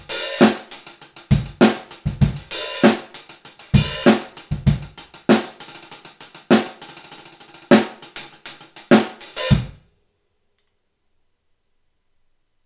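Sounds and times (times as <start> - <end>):
14 rock hi-hat cymbal: 0.0 - 9.8.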